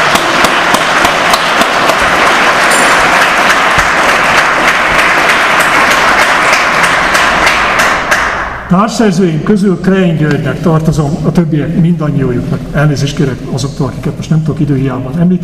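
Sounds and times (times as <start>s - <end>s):
applause from a sizable audience: 0.0s - 8.5s
speech: 8.7s - 15.4s.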